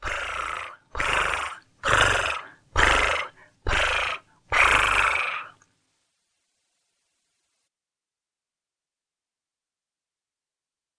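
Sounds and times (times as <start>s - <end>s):
person imitating a cat's purr: 0.0s - 5.6s.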